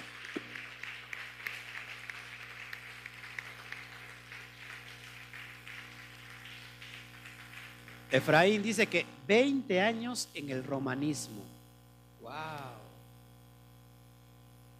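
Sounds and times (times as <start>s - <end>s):
applause: 0.0s - 9.0s
speech: 8.1s - 11.6s.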